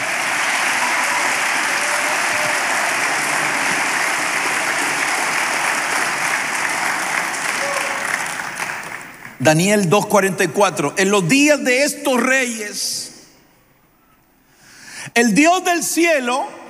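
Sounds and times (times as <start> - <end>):
audience applause: 0.0 - 9.4
speech: 9.4 - 13.1, 15.2 - 16.6.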